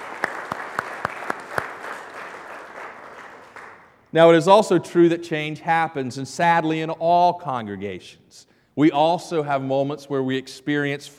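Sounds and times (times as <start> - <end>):
audience applause: 0.0 - 4.0
speech: 4.1 - 11.1.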